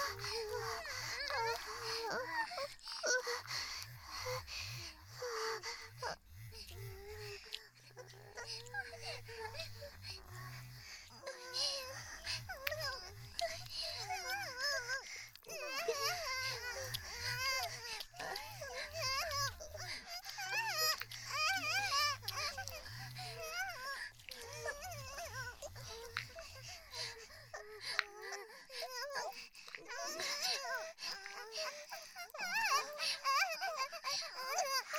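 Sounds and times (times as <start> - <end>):
vibrator buzzing: 0.0 - 27.5
moaning: 0.0 - 34.9.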